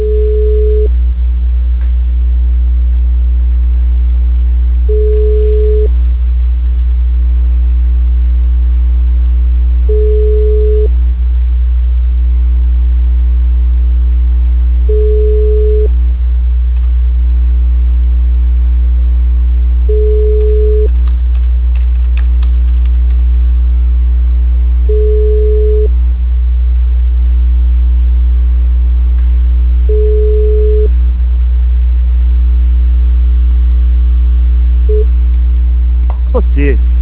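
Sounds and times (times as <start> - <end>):
telephone call-waiting hold tone beeps: 0.0 - 0.9, 4.9 - 5.9, 9.9 - 10.9, 14.9 - 15.9, 19.9 - 20.9, 24.9 - 25.9, 29.9 - 30.9
constant low electrical hum: 0.0 - 37.0.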